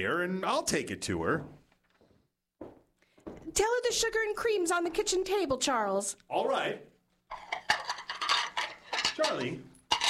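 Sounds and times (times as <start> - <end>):
speech: 0.0 - 1.6, 3.5 - 6.9, 9.2 - 9.7
dishes and cutlery clinking as they are carried and handled: 7.3 - 10.0.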